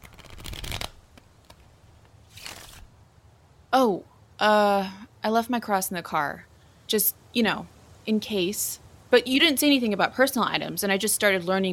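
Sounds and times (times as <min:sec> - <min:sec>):
shuffling tarot cards: 0:00.0 - 0:02.9
speech: 0:03.8 - 0:11.7.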